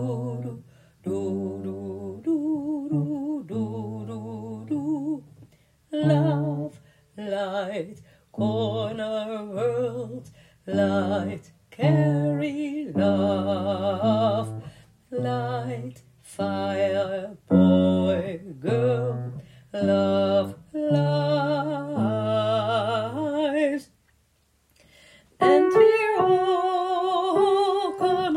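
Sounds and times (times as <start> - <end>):
third voice part singing: 0.0 - 24.0, 25.4 - 28.3.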